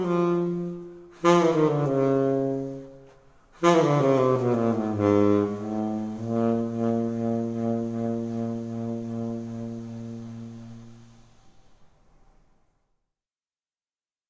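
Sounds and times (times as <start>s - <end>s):
tenor saxophone improvisation: 0.0s - 11.2s.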